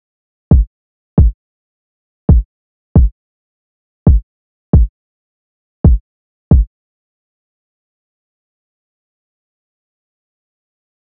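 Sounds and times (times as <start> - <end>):
kick drum: 0.5 - 1.4, 2.3 - 3.2, 4.1 - 4.9, 5.8 - 6.7.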